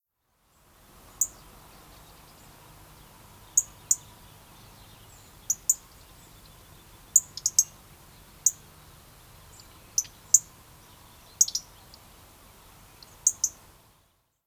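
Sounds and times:
low even background hiss: 0:00.0 - 0:14.4
European robin ticking calls: 0:03.4 - 0:07.8, 0:08.4 - 0:08.7, 0:09.5 - 0:12.1, 0:12.9 - 0:13.6.

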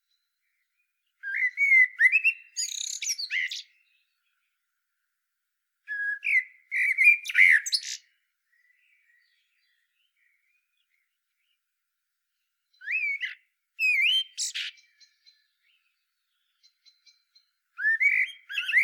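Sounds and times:
Common blackbird singing: 0:00.0 - 0:04.5, 0:05.9 - 0:11.6, 0:12.6 - 0:18.8.

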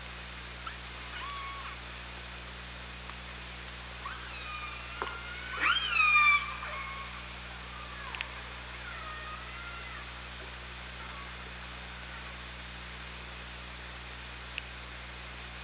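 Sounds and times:
low electrical hum: 0:00.0 - 0:15.6
steady hiss: 0:00.0 - 0:15.6
Killer whale tonal calls under water: 0:00.6 - 0:01.9, 0:04.0 - 0:12.4.

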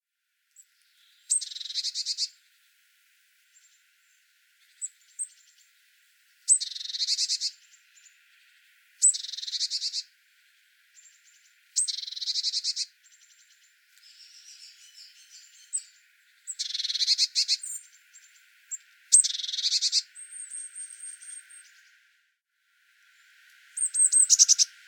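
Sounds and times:
Eurasian blue tit calling: 0:01.3 - 0:02.4, 0:06.5 - 0:08.2, 0:09.0 - 0:10.1, 0:11.0 - 0:18.4, 0:19.1 - 0:21.8, 0:23.8 - 0:24.7.

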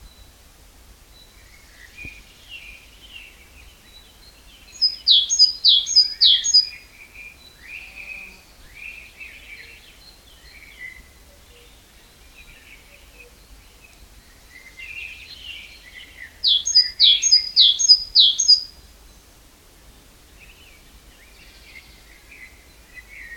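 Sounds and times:
Great tit song: 0:04.6 - 0:06.8, 0:16.4 - 0:18.7.

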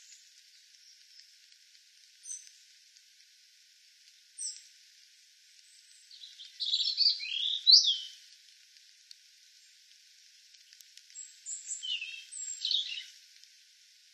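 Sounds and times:
European robin song: 0:06.1 - 0:08.2, 0:11.5 - 0:13.2.

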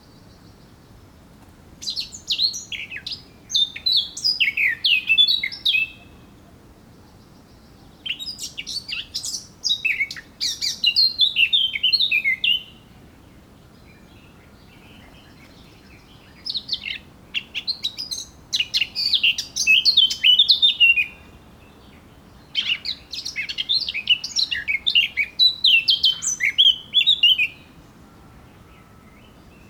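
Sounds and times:
Eurasian blackcap song: 0:01.8 - 0:06.3, 0:07.0 - 0:28.0, 0:28.6 - 0:29.6.

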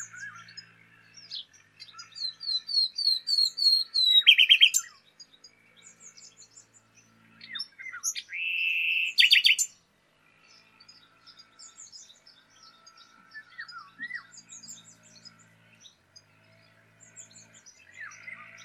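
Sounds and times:
common nightingale song: 0:00.0 - 0:09.8, 0:10.4 - 0:18.6
faint birdsong: 0:00.0 - 0:18.6.

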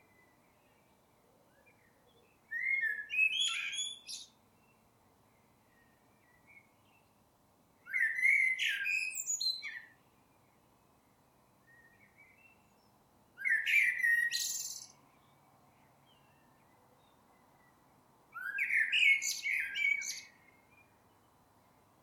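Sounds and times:
Eurasian blackbird Turdus merula singing mellow fluting phrases: 0:02.5 - 0:04.4, 0:07.9 - 0:10.0, 0:13.4 - 0:15.0, 0:18.4 - 0:20.5.

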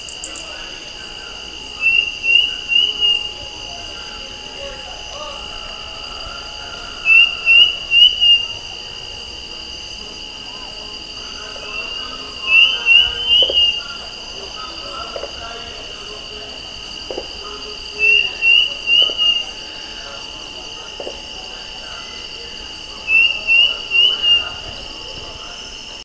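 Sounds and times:
steady high hiss: 0:00.0 - 0:26.0
bird whistled notes: 0:01.6 - 0:09.3, 0:11.6 - 0:14.2, 0:17.9 - 0:19.8, 0:23.0 - 0:25.0.

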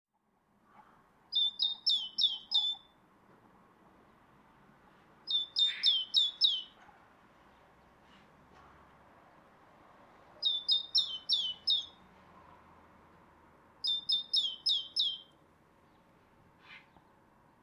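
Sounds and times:
great tit calls: 0:01.3 - 0:02.9, 0:05.3 - 0:06.8, 0:10.4 - 0:12.0, 0:13.8 - 0:15.3.

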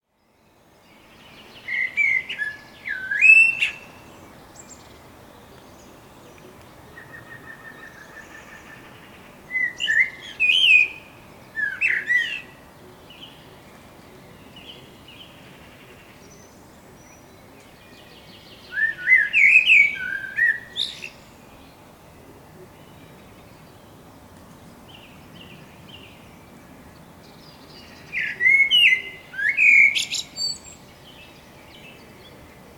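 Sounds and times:
Eurasian blackbird singing: 0:00.3 - 0:24.1, 0:24.8 - 0:32.6.

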